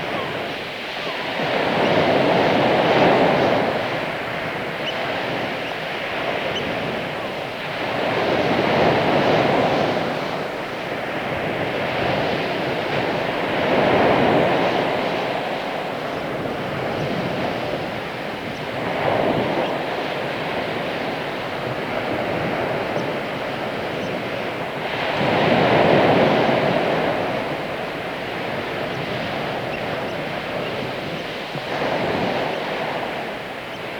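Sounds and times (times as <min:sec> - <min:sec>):
gentle waves on the beach: 0:00.0 - 0:33.9.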